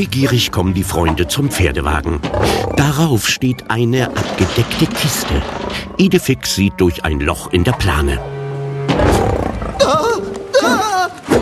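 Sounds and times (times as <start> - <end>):
speech: 0.0 - 8.4
lion roaring: 1.1 - 3.0, 4.0 - 6.0, 8.9 - 10.4.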